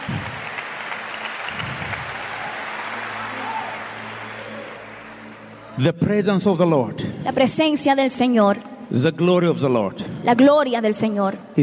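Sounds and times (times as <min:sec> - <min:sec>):
audience clapping hands: 0:00.0 - 0:05.6
speech: 0:05.8 - 0:11.6.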